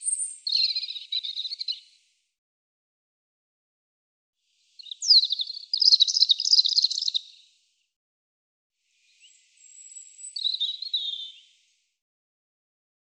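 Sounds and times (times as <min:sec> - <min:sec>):
European robin singing: 0:00.0 - 0:02.0, 0:04.8 - 0:07.5, 0:09.1 - 0:11.6.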